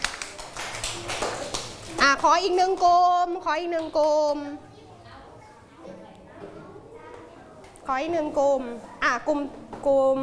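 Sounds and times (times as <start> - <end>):
classroom applause: 0.0 - 2.3
speech: 2.0 - 4.7, 7.9 - 10.2.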